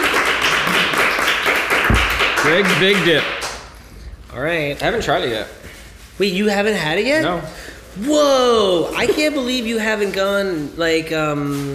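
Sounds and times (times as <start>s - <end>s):
applause: 0.0s - 3.7s
speech: 2.4s - 3.4s, 4.4s - 11.7s.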